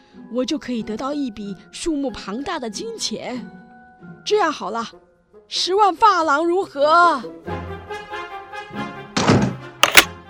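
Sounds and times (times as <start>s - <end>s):
speech: 0.3s - 3.6s, 4.2s - 7.6s
door shutting: 9.2s - 10.1s
lock turned with metallic click and rattle: 9.2s - 10.1s.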